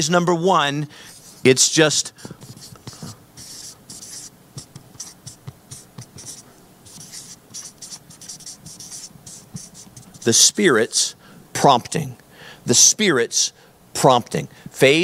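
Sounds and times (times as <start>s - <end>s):
speech: 0.0s - 2.7s, 10.3s - 15.0s
writing on a board during a church sermon: 2.2s - 10.4s.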